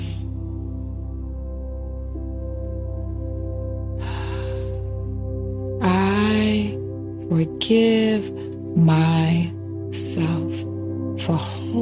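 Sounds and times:
calm tonal drone: 0.0s - 11.8s
deep breath in: 4.0s - 5.2s
speech: 7.3s - 11.8s.

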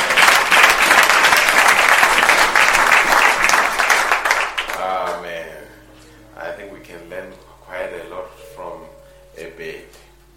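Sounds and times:
audience applause: 0.0s - 4.9s.

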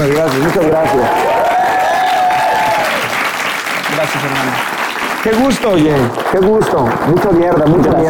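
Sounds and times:
audience applause: 0.0s - 8.0s
speech: 0.1s - 1.3s, 4.0s - 8.0s.

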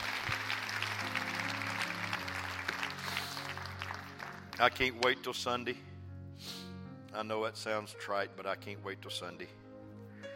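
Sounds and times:
audience clapping hands: 0.0s - 5.2s
speech: 4.6s - 6.6s, 7.2s - 9.6s.

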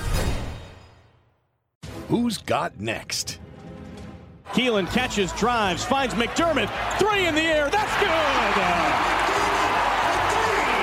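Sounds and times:
speech: 2.1s - 3.5s, 4.5s - 9.2s
basketball crowd cheering: 4.4s - 10.8s.

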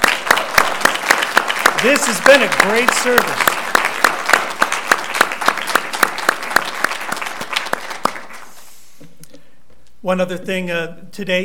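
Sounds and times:
audience applauding musicians: 0.0s - 8.6s
speech: 1.8s - 3.6s, 10.0s - 11.4s.

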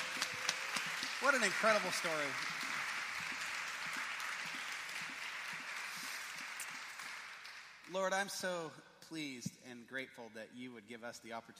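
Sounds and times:
audience clapping: 0.0s - 8.4s
speech: 1.2s - 2.6s, 7.9s - 11.5s.

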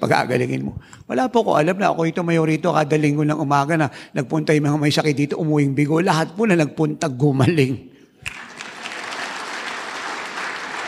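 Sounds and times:
speech: 0.0s - 8.4s
people applauding: 8.2s - 10.8s.

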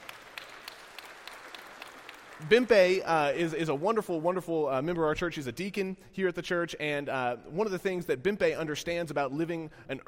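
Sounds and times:
round of applause: 0.0s - 4.3s
speech: 2.4s - 10.0s.

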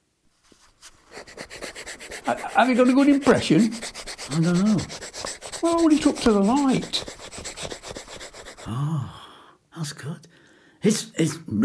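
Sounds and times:
pencil rubbing on paper over an MG car's small metal plate: 0.4s - 8.7s
speech: 2.3s - 5.0s, 5.6s - 7.1s, 9.8s - 11.6s.

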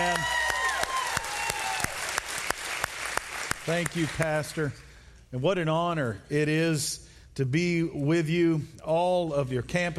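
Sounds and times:
crowd applause: 0.0s - 4.2s
speech: 3.7s - 9.9s.

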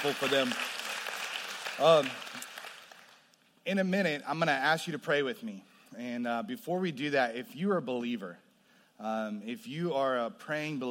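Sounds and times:
speech: 0.0s - 0.8s, 1.8s - 2.5s, 3.6s - 8.4s, 9.0s - 10.9s
audience applauding: 0.0s - 3.2s.

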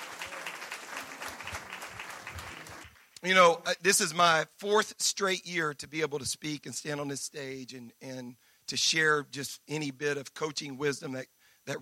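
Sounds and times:
round of applause: 0.0s - 3.2s
speech: 3.2s - 11.7s.

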